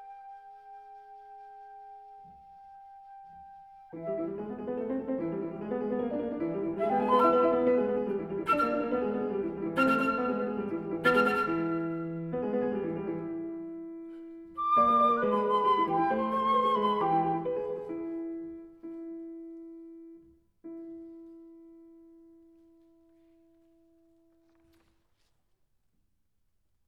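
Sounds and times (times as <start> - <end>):
flute: 0.0 - 12.6, 14.5 - 18.8
piano: 0.0 - 25.4.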